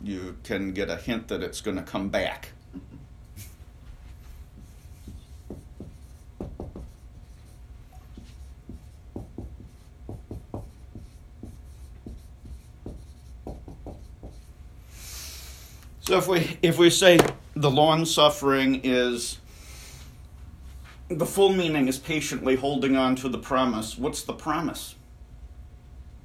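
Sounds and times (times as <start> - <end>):
speech: 0.0 - 3.5, 16.1 - 19.4, 21.1 - 25.0
writing on a board: 3.8 - 14.6.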